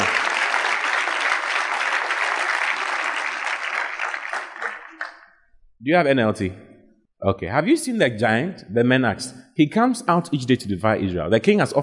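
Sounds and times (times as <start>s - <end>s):
audience clapping: 0.0s - 5.4s
speech: 5.8s - 11.8s.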